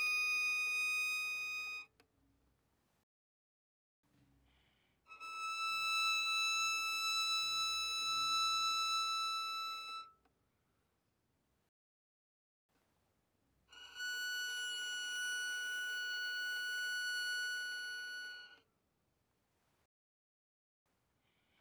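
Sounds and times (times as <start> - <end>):
violin bowed mezzo-forte on the E string: 0.0 - 1.8, 5.2 - 10.1, 13.8 - 18.5.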